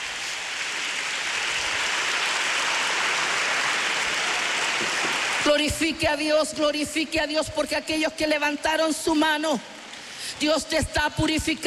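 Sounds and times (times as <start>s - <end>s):
crowd audience applauding: 0.0s - 5.8s
speech: 5.5s - 11.6s.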